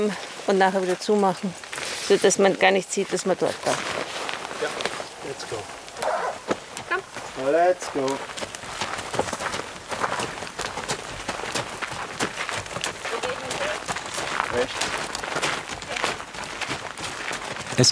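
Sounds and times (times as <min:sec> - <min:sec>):
speech: 0:00.0 - 0:04.0, 0:04.6 - 0:05.8, 0:07.4 - 0:08.4, 0:14.6 - 0:15.0
horses walking along a trail, hooves clip-clopping: 0:00.0 - 0:17.9.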